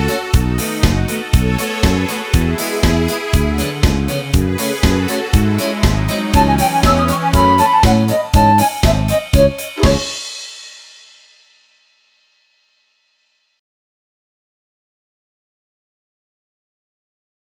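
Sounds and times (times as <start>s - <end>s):
karaoke singing: 0.0s - 10.2s.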